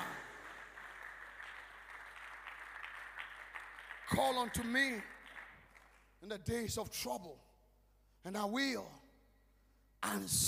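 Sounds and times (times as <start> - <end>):
crowd clapping: 0.0 - 6.4
speech: 4.1 - 5.2, 6.2 - 7.5, 8.2 - 9.0, 10.0 - 10.4.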